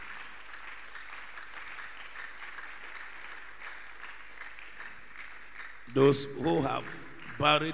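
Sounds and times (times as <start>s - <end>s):
crowd clapping hands: 0.0s - 7.7s
speech: 6.0s - 7.7s.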